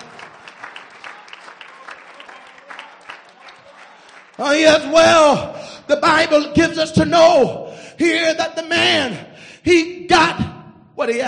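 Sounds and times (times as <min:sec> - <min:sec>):
audience clapping hands: 0:00.0 - 0:05.4
speech: 0:04.4 - 0:10.4, 0:11.0 - 0:11.2.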